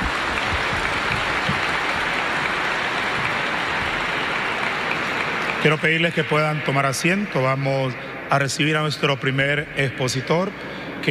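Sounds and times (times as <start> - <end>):
audience applause: 0.0 - 6.8
speech: 5.6 - 11.1.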